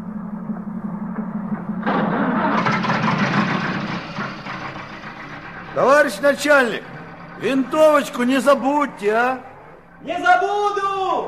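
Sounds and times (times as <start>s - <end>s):
car engine starting and revving: 1.4s - 10.0s
speech: 5.8s - 11.2s.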